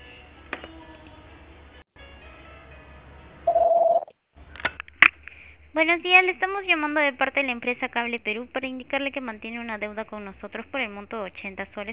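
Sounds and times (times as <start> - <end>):
voicemail beep on a phone line: 3.5 - 4.1
speech: 5.8 - 11.9.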